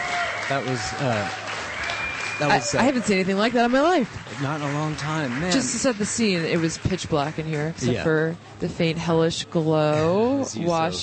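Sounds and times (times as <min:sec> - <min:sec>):
festival crowd roaring and cheering after a live music set: 0:00.0 - 0:07.9
speech: 0:00.5 - 0:01.4, 0:02.4 - 0:11.0.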